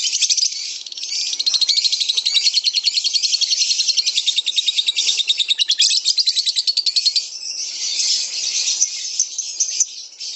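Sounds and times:
kept lovebird giving dense high scratchy chatter and trill: 0:00.0 - 0:07.1.

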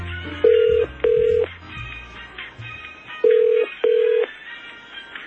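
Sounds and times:
telephone ringing with steady mid-pitched electronic tone: 0:00.4 - 0:01.5, 0:03.2 - 0:04.4.

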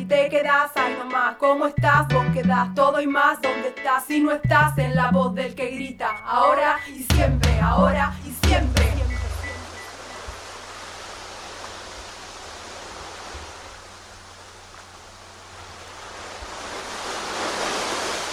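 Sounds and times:
ocean waves, surf: 0:00.0 - 0:01.8, 0:06.0 - 0:18.3
speech: 0:00.1 - 0:08.9.

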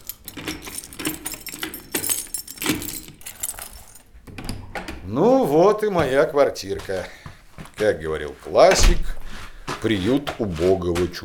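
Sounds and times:
keys jangling while unlocking an apartment door lock: 0:00.0 - 0:04.8
speech: 0:05.1 - 0:07.2, 0:07.8 - 0:09.2, 0:09.8 - 0:11.2.

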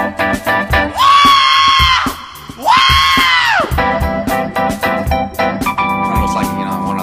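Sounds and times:
rhythmic funk-style musical backing: 0:00.0 - 0:07.0
1970s-style Black woman screaming: 0:00.9 - 0:03.8.

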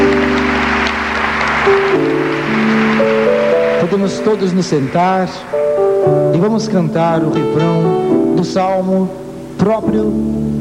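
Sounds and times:
audience applauding: 0:00.0 - 0:06.5
speech: 0:03.9 - 0:10.6.

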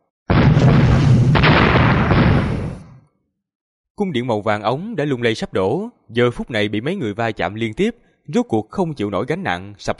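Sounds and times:
huge explosion boom with shockwave: 0:00.3 - 0:03.0
speech: 0:04.0 - 0:09.9.

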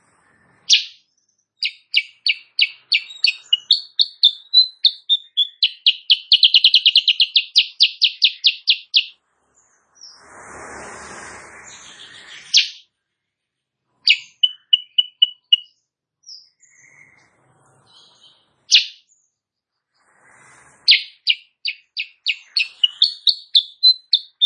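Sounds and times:
sooty-headed bulbul calling: 0:00.6 - 0:01.0, 0:01.6 - 0:09.2, 0:11.7 - 0:12.8, 0:14.0 - 0:17.2, 0:18.0 - 0:19.0, 0:20.8 - 0:24.4
rush of noise: 0:09.2 - 0:12.6.

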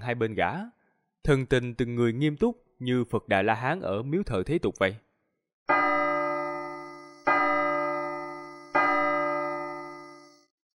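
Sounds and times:
speech: 0:00.1 - 0:05.0, 0:05.7 - 0:05.9
temple bell strikes: 0:05.7 - 0:10.4.

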